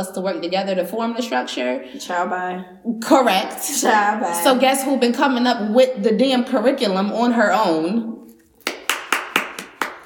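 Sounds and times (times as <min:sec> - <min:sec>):
speech: 0:00.0 - 0:08.2
hands clapping: 0:08.6 - 0:10.0.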